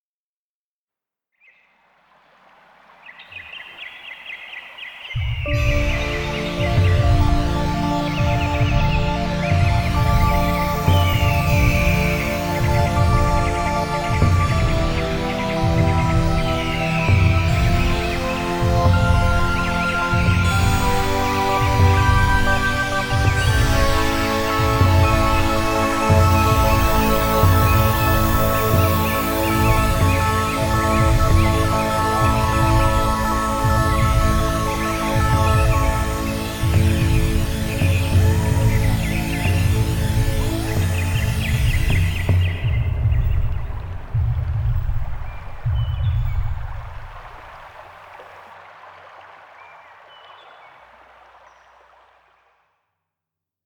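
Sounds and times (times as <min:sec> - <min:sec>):
instrumental music: 0:05.2 - 0:47.3.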